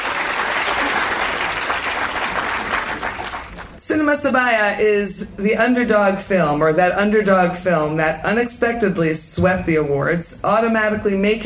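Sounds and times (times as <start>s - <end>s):
audience applause: 0.0s - 3.8s
speech: 4.0s - 11.4s.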